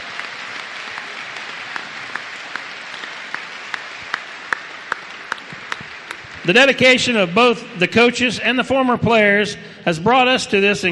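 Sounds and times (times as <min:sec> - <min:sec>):
audience applause: 0:00.0 - 0:07.3
speech: 0:06.4 - 0:10.9.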